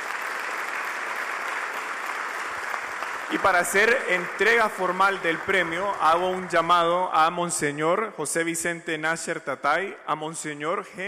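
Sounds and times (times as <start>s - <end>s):
audience applause: 0.0s - 6.6s
speech: 3.3s - 11.0s.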